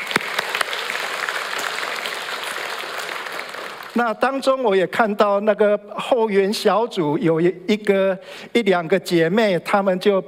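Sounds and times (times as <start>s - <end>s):
crowd clapping: 0.0s - 4.3s
speech: 4.0s - 10.2s.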